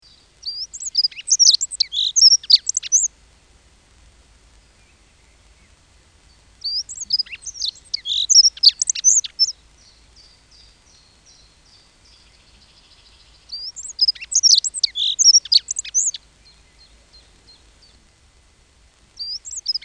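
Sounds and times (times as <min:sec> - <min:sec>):
dunnock singing: 0:00.4 - 0:03.1, 0:06.6 - 0:09.6, 0:10.3 - 0:18.0.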